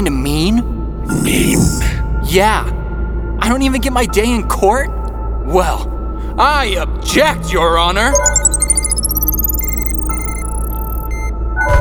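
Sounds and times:
speech: 0.0 - 2.8, 3.4 - 8.4
bracelet timer beeping: 8.2 - 11.3.

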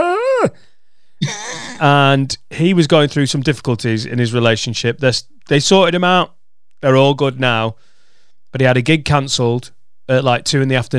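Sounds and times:
person imitating an elk's mating call: 0.0 - 0.6
rough vocal cry: 0.0 - 0.6, 1.2 - 1.9
speech: 1.2 - 7.9, 8.5 - 10.9.

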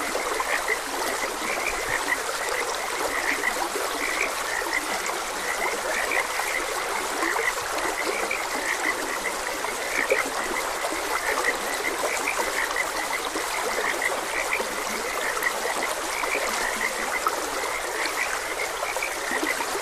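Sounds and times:
many frogs croaking: 0.0 - 19.7
stream trickling: 0.0 - 19.7.

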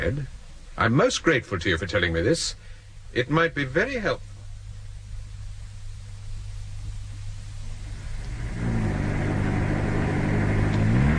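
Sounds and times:
speech: 0.0 - 4.3
car driving along a high street toward a garage: 7.8 - 11.1.

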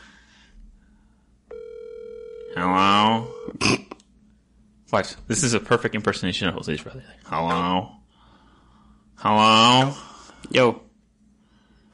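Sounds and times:
phone call ringing tone: 1.5 - 3.6
speech: 2.6 - 3.8, 4.9 - 8.0, 9.2 - 10.8.

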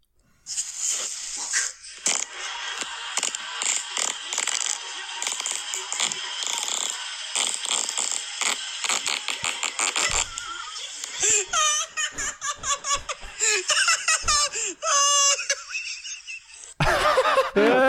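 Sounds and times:
long fart: 1.4 - 2.3, 3.2 - 10.4
laughter: 2.0 - 17.8.

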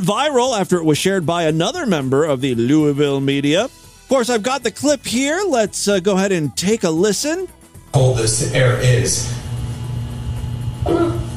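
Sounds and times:
speech: 0.0 - 9.4
fart during live weather broadcast: 10.8 - 11.3.

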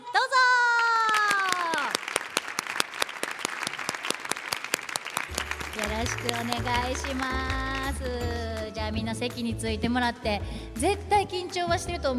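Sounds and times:
group of people applauding: 0.6 - 8.7
speech: 6.0 - 12.1.

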